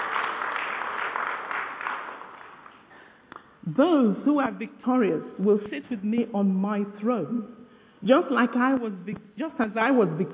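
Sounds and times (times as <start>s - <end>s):
audience applause: 0.0s - 3.0s
speech: 3.7s - 10.3s.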